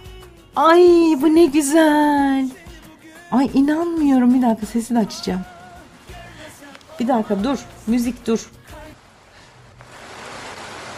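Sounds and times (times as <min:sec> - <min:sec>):
speech: 0:00.6 - 0:02.6, 0:03.3 - 0:05.5, 0:07.0 - 0:08.8
rain falling: 0:09.0 - 0:10.9.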